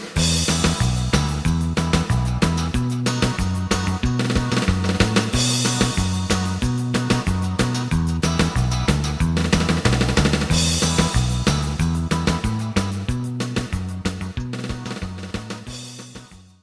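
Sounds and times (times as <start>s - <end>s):
lead melody: 0.2s - 16.1s.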